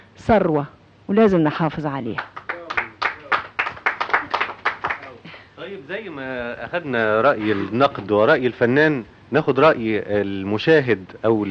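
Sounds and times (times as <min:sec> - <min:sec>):
speech: 0:00.2 - 0:02.4, 0:05.6 - 0:11.4
audience clapping: 0:02.2 - 0:05.3.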